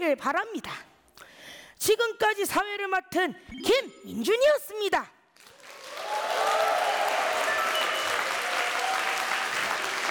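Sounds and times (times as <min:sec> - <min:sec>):
speech: 0:00.1 - 0:00.9, 0:01.8 - 0:05.2
crowd applause: 0:05.4 - 0:10.0.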